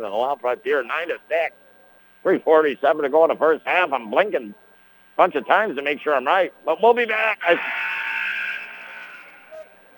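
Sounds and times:
speech: 0.0s - 1.6s, 2.2s - 4.6s, 5.2s - 7.8s
basketball arena buzzer blaring: 6.2s - 9.9s.

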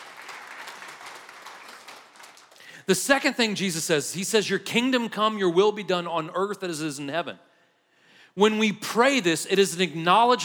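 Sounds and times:
audience clapping: 0.0s - 2.8s
speech: 2.9s - 7.5s, 8.4s - 10.4s.

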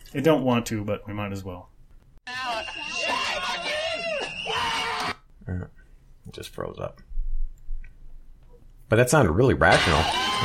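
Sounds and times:
speech: 0.1s - 1.7s, 5.5s - 7.1s, 8.9s - 10.4s
kids screeching during an attack: 2.3s - 5.2s, 9.7s - 10.4s.

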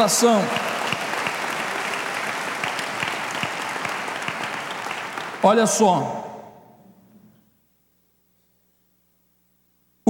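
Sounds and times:
speech: 0.0s - 0.7s, 5.4s - 6.2s
audience applauding: 0.0s - 6.6s.

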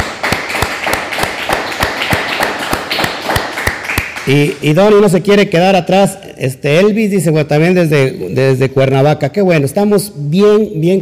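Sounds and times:
hand clapping: 0.0s - 4.8s
speech: 4.3s - 11.0s.

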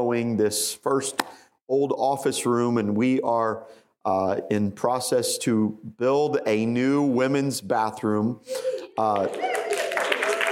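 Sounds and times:
speech: 0.0s - 9.7s
women clapping their hands: 8.9s - 10.5s.

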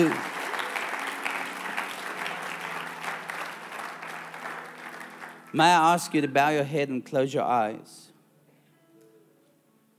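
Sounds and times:
speech: 0.0s - 0.3s, 5.5s - 8.1s
audience clapping: 0.0s - 6.2s.

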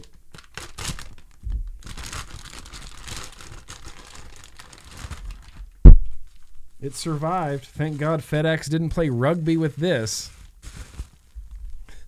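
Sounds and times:
plastic tearing: 0.0s - 6.5s, 10.2s - 11.8s
vacuum-sealed plastic packaging crinkling: 0.0s - 12.0s
sharp thump: 5.8s - 6.2s
speech: 6.8s - 10.4s.

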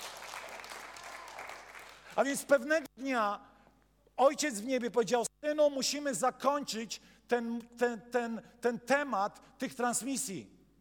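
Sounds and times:
audience clapping hands: 0.0s - 2.2s
speech: 2.2s - 3.5s, 4.2s - 10.6s.

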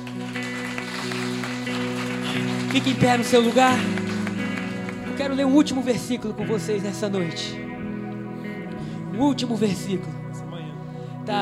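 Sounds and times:
applause: 0.0s - 6.2s
speech: 2.7s - 4.0s, 5.2s - 7.6s, 9.2s - 10.2s, 11.2s - 11.4s.

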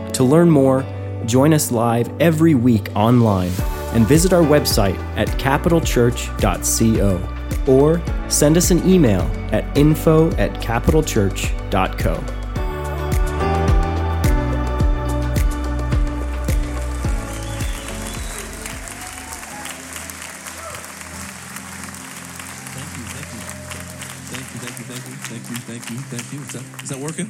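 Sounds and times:
music closing chords: 0.0s - 27.2s
speech: 0.1s - 12.4s
audience applause: 17.0s - 27.2s.

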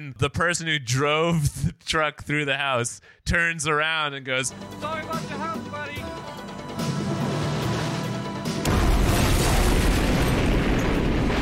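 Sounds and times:
speech: 0.1s - 5.7s
gas station explosion: 7.2s - 11.4s.

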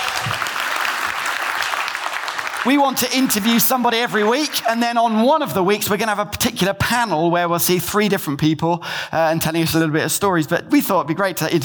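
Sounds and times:
audience applause: 0.0s - 4.8s
speech: 2.6s - 11.6s.

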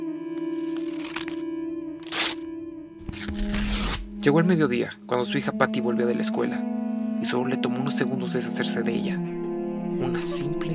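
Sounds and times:
family photographs being torn up: 0.3s - 1.4s, 2.0s - 2.4s, 3.0s - 4.1s
speech: 4.2s - 10.7s.

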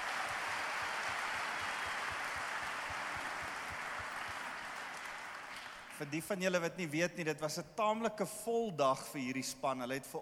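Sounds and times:
audience applause: 0.0s - 6.1s
speech: 6.0s - 10.2s.

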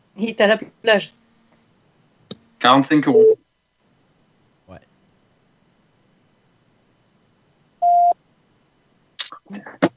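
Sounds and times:
speech: 0.2s - 1.2s, 2.6s - 3.4s
electronic beep tone: 3.1s - 3.4s, 7.8s - 8.2s.

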